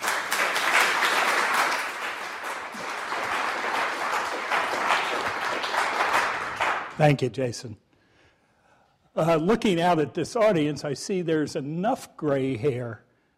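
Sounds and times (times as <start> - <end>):
audience applause: 0.0 - 7.0
speech: 7.0 - 7.9, 9.2 - 13.0.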